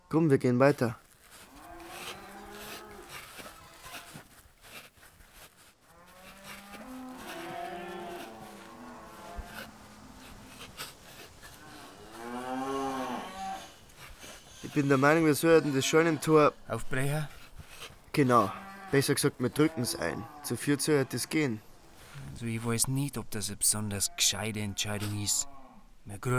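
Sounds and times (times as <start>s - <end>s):
speech: 0.1s - 1.0s, 14.8s - 17.4s, 18.1s - 21.7s, 22.4s - 26.3s
cattle bellowing loudly in a barn: 0.7s - 15.5s, 16.5s - 20.4s, 21.9s - 22.4s.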